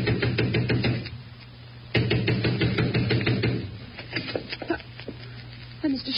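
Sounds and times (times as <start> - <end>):
fist pounding on a front door: 0.0 - 1.0, 1.9 - 3.7.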